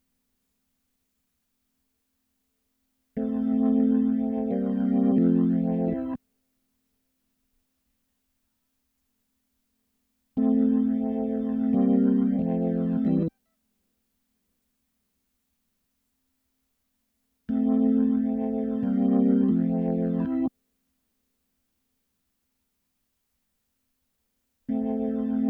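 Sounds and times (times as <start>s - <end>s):
keyboard playing: 3.2s - 6.2s, 10.4s - 13.3s, 17.5s - 20.5s, 24.7s - 25.4s.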